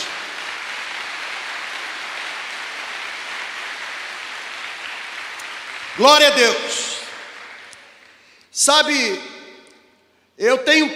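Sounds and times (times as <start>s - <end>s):
loud applause from audience: 0.0s - 8.4s
speech: 6.0s - 6.8s, 8.6s - 9.3s, 10.4s - 10.9s.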